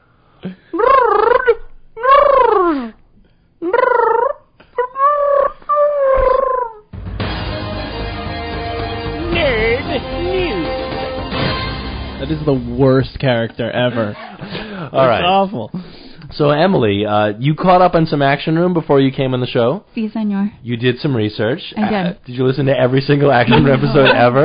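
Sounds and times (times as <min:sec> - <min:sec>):
voice imitating a pigeon cooing: 0:00.5 - 0:03.0, 0:03.6 - 0:06.9
dense steady music: 0:07.0 - 0:12.9
speech: 0:12.5 - 0:24.4
laughter: 0:13.8 - 0:15.0, 0:23.3 - 0:24.4.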